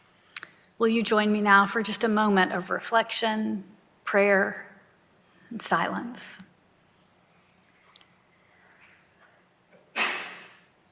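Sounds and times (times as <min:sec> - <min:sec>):
speech: 0:00.8 - 0:04.7, 0:05.5 - 0:06.5
loud sneeze: 0:09.9 - 0:10.5.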